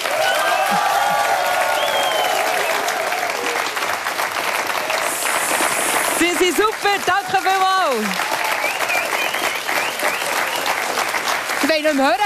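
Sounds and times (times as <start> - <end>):
cheers and whistles: 0.0 - 3.7, 8.2 - 10.9
live crowd applause: 0.0 - 12.2
speech: 6.5 - 8.4, 11.7 - 12.2.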